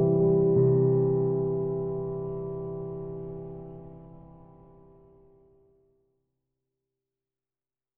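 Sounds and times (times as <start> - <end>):
piano study music: 0.0 - 5.4.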